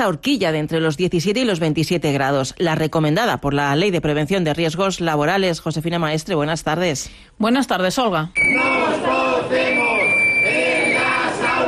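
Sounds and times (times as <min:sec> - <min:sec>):
speech: 0:00.0 - 0:09.9
high whistle-like tone: 0:08.4 - 0:08.8, 0:09.6 - 0:11.2
protest crowd chanting a slogan: 0:08.4 - 0:11.6.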